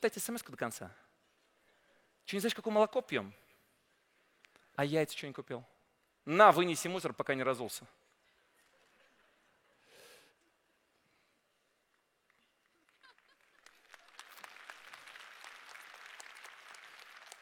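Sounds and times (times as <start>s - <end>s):
speech: 0.0s - 1.1s, 2.3s - 3.4s, 4.8s - 8.0s
audience clapping: 12.2s - 17.4s.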